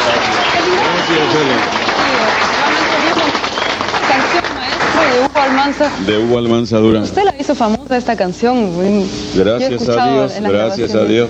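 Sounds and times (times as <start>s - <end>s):
applause: 0.0s - 6.0s
speech: 1.3s - 2.4s, 5.4s - 11.2s.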